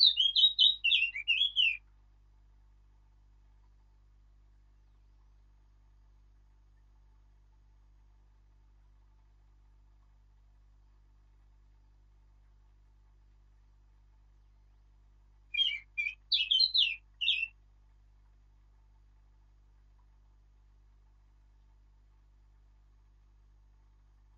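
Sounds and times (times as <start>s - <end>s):
Sylvia atricapilla singing: 0.0s - 1.8s, 15.5s - 17.5s.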